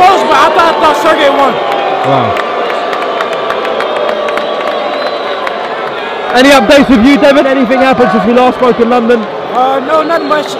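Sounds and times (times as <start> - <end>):
crowd booing a boxer: 0.0 - 10.5
speech: 1.0 - 2.5, 6.3 - 10.5.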